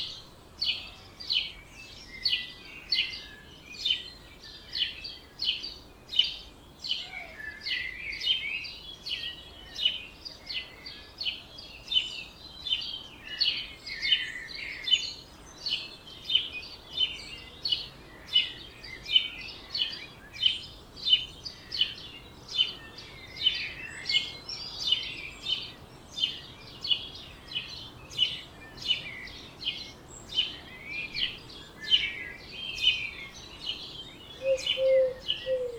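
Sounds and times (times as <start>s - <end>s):
birds singing dawn chorus in Oberhofen Inntal Austria: 0.0s - 35.7s
low bird call: 34.3s - 35.7s.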